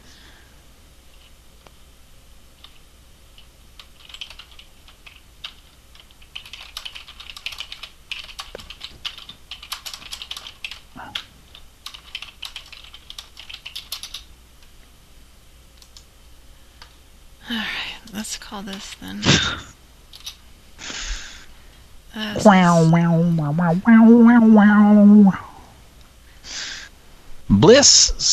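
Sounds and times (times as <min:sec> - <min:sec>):
typing on a computer keyboard: 0:03.4 - 0:14.3
speech: 0:18.3 - 0:19.8, 0:22.2 - 0:25.4, 0:27.6 - 0:28.3.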